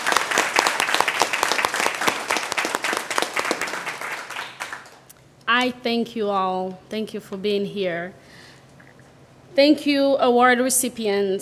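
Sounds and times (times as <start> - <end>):
audience applauding: 0.0 - 5.1
speech: 5.6 - 8.2, 9.6 - 11.3.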